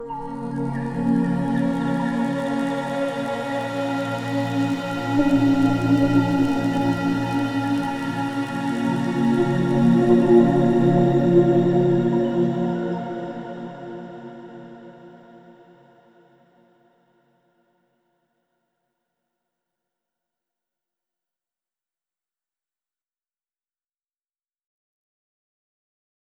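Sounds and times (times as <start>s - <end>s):
drone: 0.0s - 13.8s.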